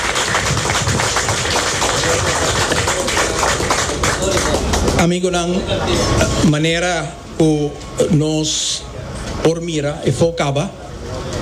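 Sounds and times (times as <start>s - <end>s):
audience applause: 0.0s - 5.1s
speech: 5.0s - 10.8s.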